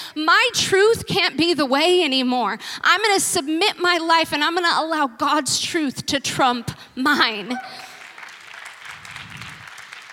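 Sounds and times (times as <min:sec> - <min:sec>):
speech: 0:00.2 - 0:07.9
audience clapping: 0:07.8 - 0:10.1.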